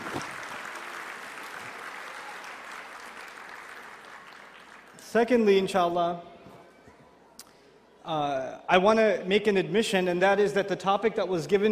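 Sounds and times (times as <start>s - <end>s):
audience applause: 0.0s - 5.0s
speech: 5.1s - 6.3s, 8.1s - 11.7s.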